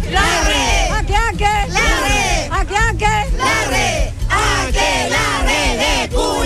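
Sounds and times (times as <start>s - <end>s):
large crowd shouting a festive cheer: 0.1s - 0.9s, 1.7s - 2.5s, 3.4s - 6.4s.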